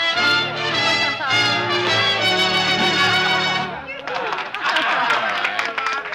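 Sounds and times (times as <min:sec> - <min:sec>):
band playing a harmonic closing passage: 0:00.0 - 0:04.0
crowd chatter: 0:00.0 - 0:06.1
laughter: 0:00.6 - 0:06.1
scattered applause in a roadhouse: 0:02.8 - 0:06.1.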